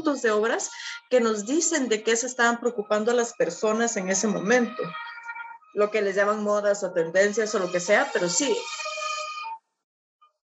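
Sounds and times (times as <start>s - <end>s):
speech: 0.0s - 5.1s, 5.7s - 8.9s
ambulance siren passing: 2.7s - 9.7s.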